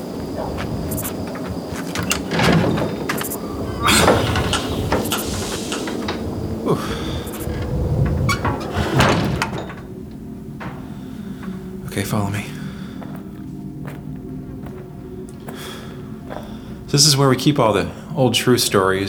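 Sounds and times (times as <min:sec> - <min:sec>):
heavy door being opened: 0:00.0 - 0:12.0
speech: 0:17.0 - 0:19.0.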